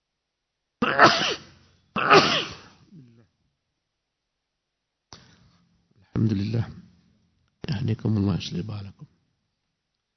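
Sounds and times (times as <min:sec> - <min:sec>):
person sneezing: 0:00.8 - 0:03.1
speech: 0:01.0 - 0:01.4, 0:06.2 - 0:06.8, 0:07.9 - 0:09.2.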